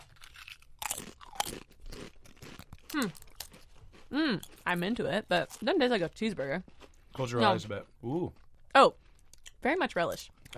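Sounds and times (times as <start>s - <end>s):
crunching Pringles potato chips: 0.0s - 4.8s
speech: 3.0s - 3.3s, 4.1s - 9.0s, 9.6s - 10.5s.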